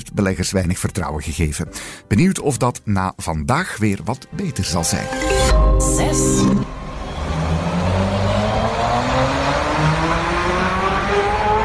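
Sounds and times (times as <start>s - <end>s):
speech: 0.1s - 6.8s
Tesla Semi electric truck accelerating: 6.5s - 11.6s.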